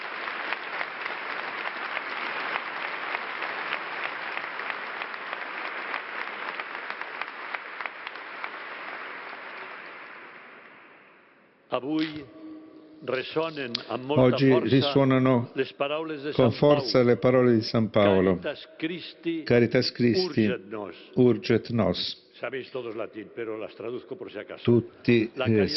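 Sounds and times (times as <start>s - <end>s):
crowd applauding: 0.0s - 11.1s
speech: 11.8s - 12.4s, 13.0s - 25.7s.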